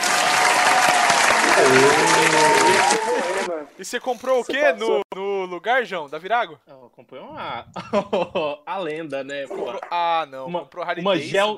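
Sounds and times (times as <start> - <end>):
crowd applause: 0.0 - 3.5
speech: 1.6 - 3.1, 3.8 - 11.5
laughter: 7.8 - 8.6.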